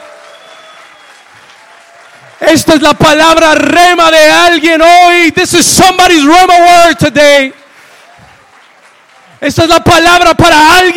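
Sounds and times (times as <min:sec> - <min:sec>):
audience hand clapping: 0:00.0 - 0:03.8, 0:07.7 - 0:10.9
speech: 0:02.4 - 0:07.6, 0:09.4 - 0:10.9.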